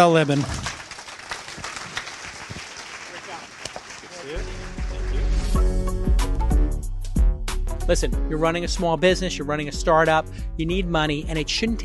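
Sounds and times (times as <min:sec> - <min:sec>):
speech: 0:00.0 - 0:00.7, 0:07.9 - 0:11.8
audience applause for a startup CEO's interview: 0:00.0 - 0:05.6
loud music: 0:04.4 - 0:11.8.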